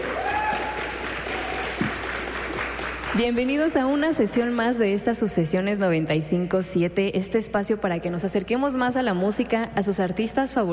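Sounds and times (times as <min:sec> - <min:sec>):
audience applause: 0:00.0 - 0:03.3
speech: 0:03.2 - 0:10.7.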